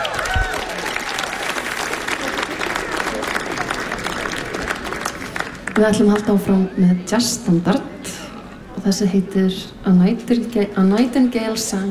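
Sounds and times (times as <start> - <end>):
crowd applause for a jazz musician at a concert: 0.0 - 6.2
speech: 5.8 - 7.9, 8.8 - 11.8.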